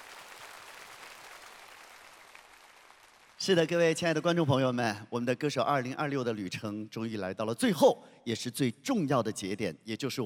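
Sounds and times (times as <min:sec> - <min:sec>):
audience applause: 0:00.0 - 0:03.4
speech: 0:03.4 - 0:10.2.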